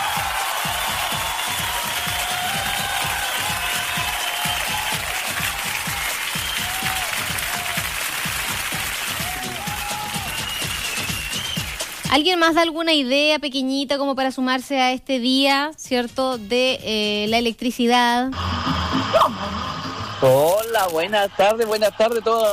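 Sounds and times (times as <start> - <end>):
audience applause: 0.0 - 12.1, 18.4 - 22.5
speech: 12.1 - 18.6, 20.2 - 22.5.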